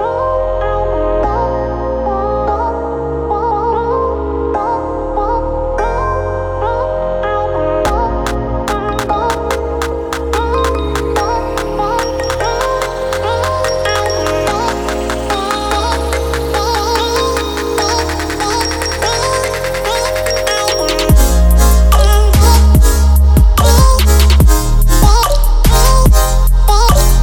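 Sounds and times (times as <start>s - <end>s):
chill future bass music: 0.0s - 27.2s.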